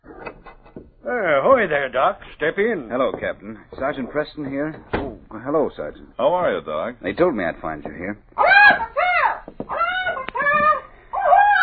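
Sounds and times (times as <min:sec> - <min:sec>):
speech: 0:01.1 - 0:08.8
pet bird squawking: 0:08.4 - 0:11.6.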